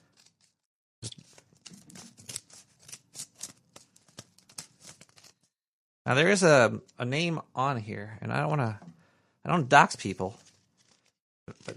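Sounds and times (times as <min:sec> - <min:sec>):
scissors snipping: 0:00.1 - 0:05.4
speech: 0:06.1 - 0:10.4.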